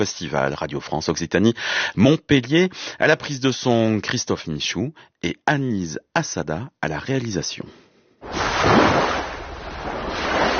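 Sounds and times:
speech: 0.0s - 7.8s
ocean waves: 8.2s - 10.5s.

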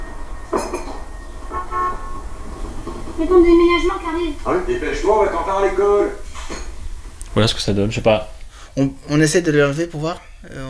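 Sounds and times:
horn toots: 0.0s - 6.5s
low rumble: 0.0s - 10.6s
speech: 3.2s - 6.2s, 7.4s - 10.6s.

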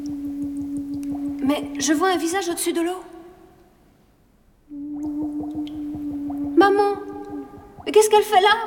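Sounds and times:
steady humming drone: 0.0s - 2.0s, 4.7s - 8.0s
bubbles blown through a tube underwater: 0.0s - 2.2s, 4.7s - 8.6s
speech: 1.5s - 3.1s, 8.0s - 8.6s.

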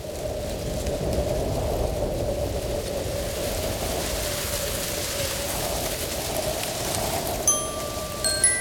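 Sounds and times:
wind rushing steadily through trees: 0.2s - 8.5s
faint high chirps: 7.5s - 8.5s.

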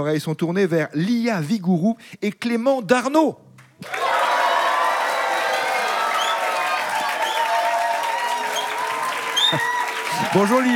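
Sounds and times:
speech: 0.0s - 4.2s, 10.3s - 10.7s
audience applause: 3.8s - 10.7s
cheers and shouts: 3.8s - 10.7s.

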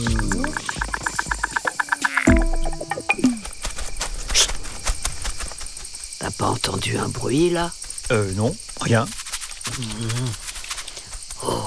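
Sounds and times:
cicadas chirping: 0.0s - 11.6s
speech: 6.4s - 9.2s, 9.8s - 10.4s.

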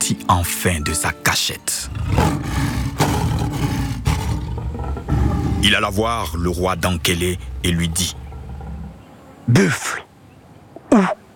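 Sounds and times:
speech: 0.1s - 2.7s, 5.6s - 8.2s, 9.5s - 10.1s
lion roaring: 1.8s - 9.5s.

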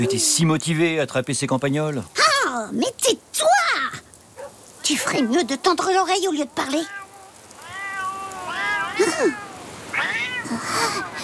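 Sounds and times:
speech: 0.0s - 4.1s, 4.8s - 7.0s, 9.0s - 9.4s, 10.0s - 11.2s
cats meowing: 6.3s - 11.2s.

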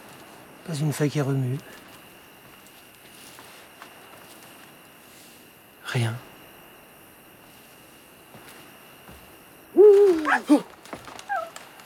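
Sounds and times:
speech: 0.7s - 1.9s, 5.9s - 6.3s
owl hooting: 9.7s - 11.6s.

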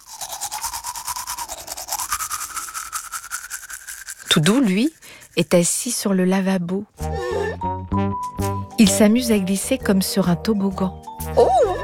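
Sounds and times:
toothbrush scrubbing teeth at bedtime: 0.0s - 9.0s, 10.8s - 11.8s
speech: 4.4s - 7.2s, 8.8s - 11.6s.

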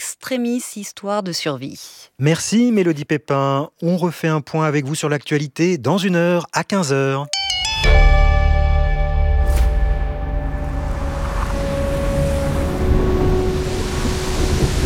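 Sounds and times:
speech: 0.2s - 8.0s
sustained droning tones: 7.8s - 14.8s
deafening roar of river rapids: 10.6s - 14.8s.

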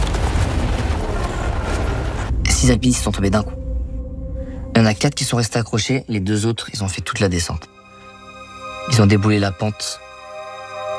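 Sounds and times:
snow cornice collapsing on a mountain: 0.0s - 2.4s
speech: 2.6s - 3.6s, 4.8s - 7.8s, 8.9s - 10.0s.

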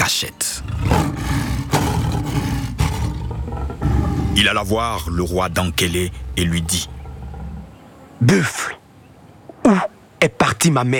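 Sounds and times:
speech: 0.1s - 1.2s, 4.4s - 7.0s, 8.2s - 8.8s, 9.7s - 10.9s
lion roaring: 0.6s - 8.2s.

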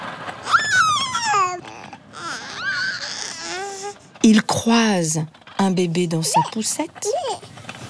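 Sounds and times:
small dog yelping and whining: 0.5s - 3.9s
speech: 4.3s - 7.4s.

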